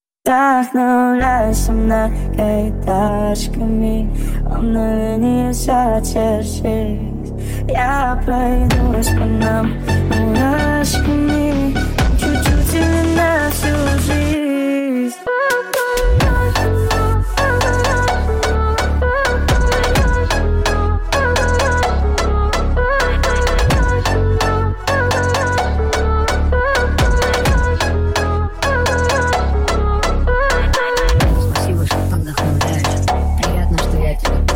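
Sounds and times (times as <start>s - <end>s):
phonk remix: 1.2s - 34.5s.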